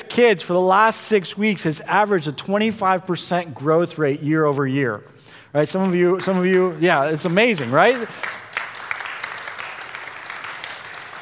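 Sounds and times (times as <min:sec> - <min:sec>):
speech: 0:00.2 - 0:08.4
audience clapping: 0:05.8 - 0:11.1.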